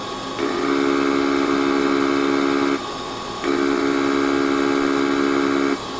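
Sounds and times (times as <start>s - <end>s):
office device buzzing: 0.0s - 5.8s.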